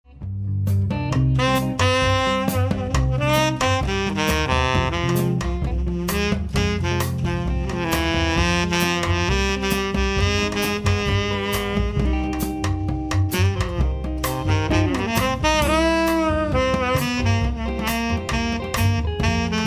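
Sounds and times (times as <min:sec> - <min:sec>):
saxophone: 0:01.1 - 0:19.6.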